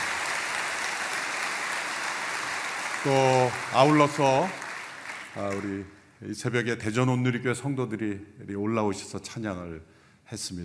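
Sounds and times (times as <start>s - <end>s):
audience applause: 0.0s - 5.9s
speech: 3.0s - 4.6s, 5.4s - 10.6s.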